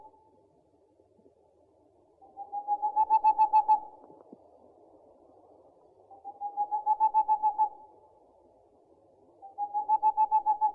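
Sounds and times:
owl hoarse calls: 2.4 - 4.0, 6.1 - 7.8, 9.5 - 10.7.

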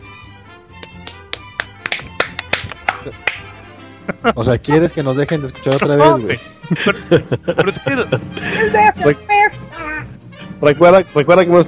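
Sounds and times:
applause: 0.8 - 3.5
laughter: 2.8 - 8.9
speech: 3.0 - 3.3, 4.1 - 11.6.

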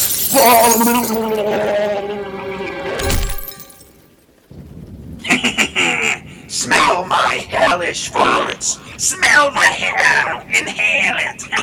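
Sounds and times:
window glass shattering: 0.0 - 1.6, 3.0 - 4.1
speech: 0.4 - 2.2, 6.6 - 11.6.

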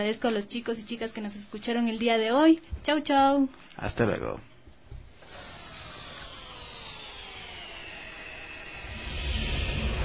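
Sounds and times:
speech: 0.0 - 4.5
spaceship engines starting up with broad hiss: 5.4 - 10.0
deep rumble: 8.8 - 10.0.

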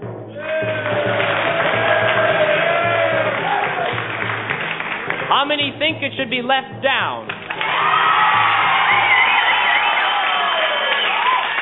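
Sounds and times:
studio audience cheering and shouting to vote: 0.3 - 4.3, 7.4 - 11.6
speech: 5.4 - 7.4.

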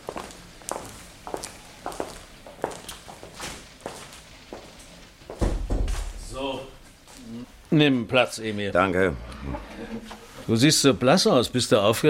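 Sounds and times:
footsteps of a boy and a police inspector walking to an adjoining room: 0.0 - 7.7
loud thump: 5.4 - 6.3
speech: 7.7 - 12.0.

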